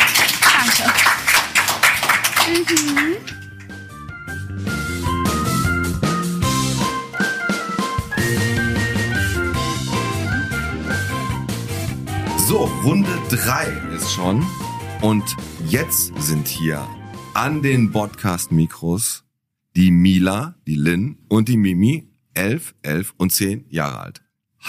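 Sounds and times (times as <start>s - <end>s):
small group clapping: 0.0s - 3.9s
speech: 2.5s - 3.4s, 12.6s - 19.2s, 19.8s - 24.6s
melodic music jingle: 2.7s - 18.1s.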